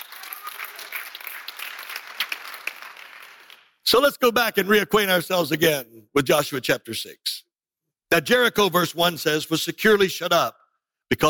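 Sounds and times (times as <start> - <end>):
audience clapping in praise: 0.0 - 3.8
speech: 3.9 - 7.3, 8.1 - 11.2.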